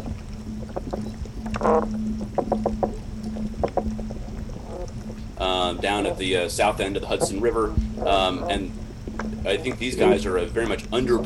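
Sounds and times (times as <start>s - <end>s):
murky underwater rumble: 0.0s - 11.2s
toadfish droning hums underwater: 0.0s - 11.2s
speech: 1.6s - 2.0s, 5.8s - 8.8s, 9.4s - 11.2s.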